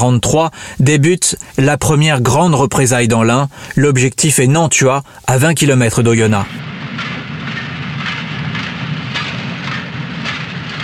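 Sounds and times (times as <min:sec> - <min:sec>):
speech: 0:00.0 - 0:07.6
train arriving: 0:04.7 - 0:10.8.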